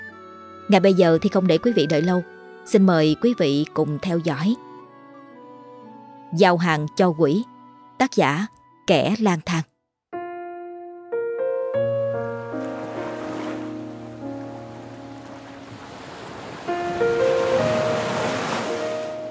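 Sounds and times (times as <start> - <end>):
speech: 0.7 - 4.6, 6.3 - 9.7
ocean waves at night: 12.2 - 19.3
wind at night: 12.6 - 19.3.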